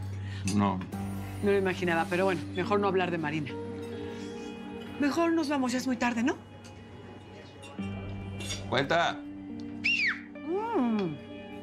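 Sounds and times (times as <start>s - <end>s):
speech: 0.4s - 3.6s, 5.0s - 6.5s, 8.7s - 9.2s
person whistling: 9.8s - 11.2s.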